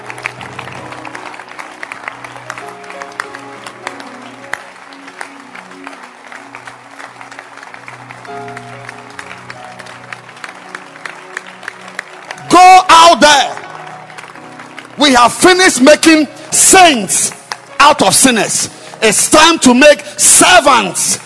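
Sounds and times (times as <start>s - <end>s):
congregation clapping at a church service: 0.0s - 21.2s
speech: 12.6s - 13.5s, 15.0s - 21.2s.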